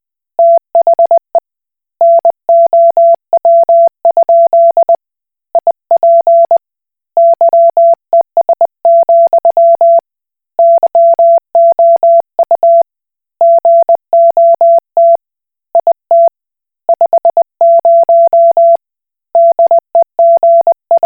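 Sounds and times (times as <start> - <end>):
Koch Morse code beeps: 0.4 - 1.3, 2.0 - 5.0, 5.6 - 6.6, 7.2 - 10.0, 10.6 - 12.8, 13.4 - 15.2, 15.8 - 16.3, 16.9 - 18.8, 19.4 - 21.0.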